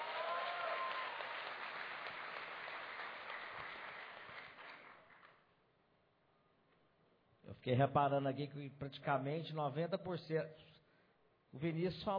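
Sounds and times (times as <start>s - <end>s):
faint whoops and voices: 0.0s - 1.4s
crowd applauding: 0.0s - 5.4s
speech: 7.6s - 10.7s, 11.5s - 12.1s.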